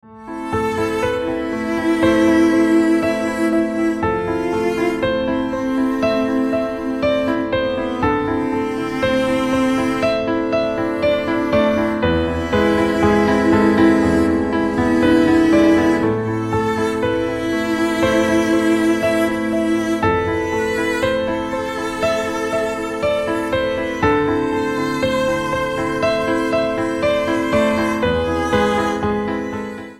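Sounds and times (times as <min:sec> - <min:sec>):
sad piano ringtone: 0:00.1 - 0:29.9.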